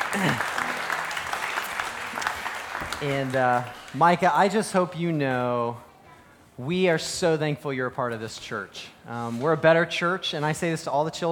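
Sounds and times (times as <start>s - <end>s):
audience applause: 0.0s - 4.0s
speech: 0.1s - 0.6s, 3.0s - 5.9s, 6.6s - 11.3s.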